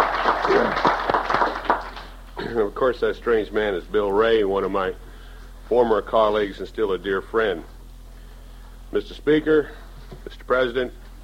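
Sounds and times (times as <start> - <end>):
audience applause: 0.0 - 2.2
speech: 2.8 - 5.1, 5.7 - 7.7, 8.9 - 11.0.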